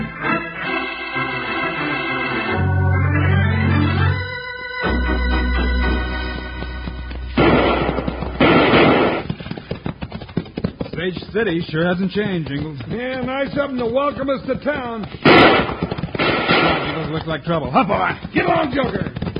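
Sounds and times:
dramatic music in a western radio drama: 0.0 - 8.9
gunfire sound effect in a western radio drama: 7.3 - 9.4, 15.2 - 17.3
speech: 11.0 - 15.8, 16.6 - 19.2.

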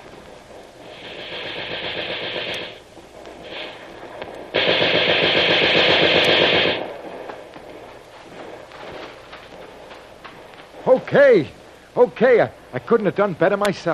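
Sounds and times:
machine gun fire: 0.0 - 9.9
speech: 11.1 - 13.9.

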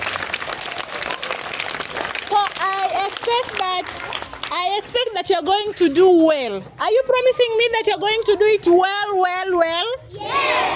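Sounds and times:
students clapping: 0.0 - 6.0
speech: 2.3 - 10.7.

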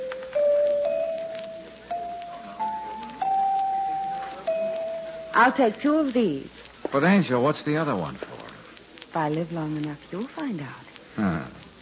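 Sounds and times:
chimes ringing: 0.0 - 5.6
speech: 5.4 - 8.3, 9.2 - 11.4.

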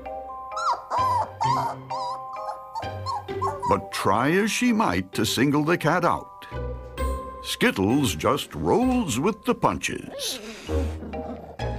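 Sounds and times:
pointer dog whimpering and yipping: 0.5 - 3.9, 10.1 - 11.5
speech: 1.6 - 2.1, 3.7 - 6.6, 7.4 - 11.0.

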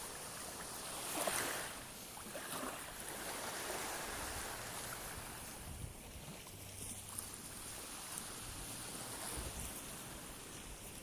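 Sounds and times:
sea surf at La Foggia beach in Siculiana: 0.0 - 10.9.

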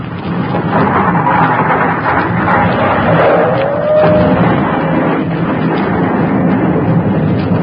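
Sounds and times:
volcanic explosion: 0.0 - 7.6
something whizzing by: 2.0 - 5.4.

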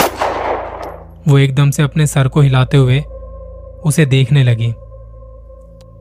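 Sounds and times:
loud gunshot: 0.0 - 1.0
speech: 1.3 - 3.1, 3.8 - 4.8.

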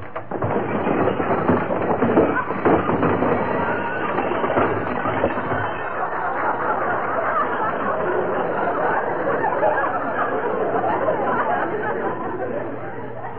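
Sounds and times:
junk crashing out of an overstuffed closet: 0.0 - 8.8
laughter: 1.2 - 13.3.

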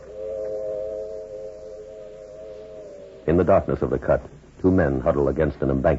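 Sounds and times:
distant southbound freight train whistle: 0.0 - 4.4
speech: 3.2 - 5.9.

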